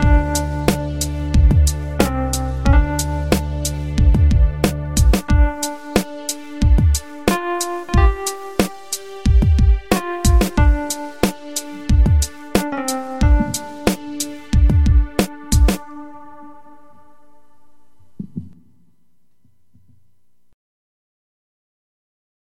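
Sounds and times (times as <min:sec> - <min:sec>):
saxophone: 0:00.0 - 0:17.4.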